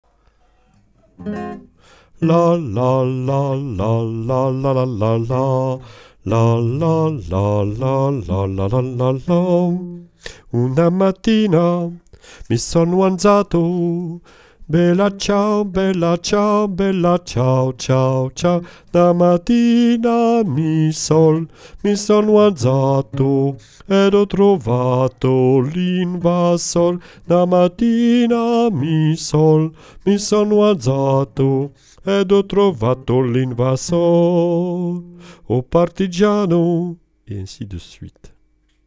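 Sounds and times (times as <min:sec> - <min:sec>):
bass voices singing a chorale: 0:02.2 - 0:37.7.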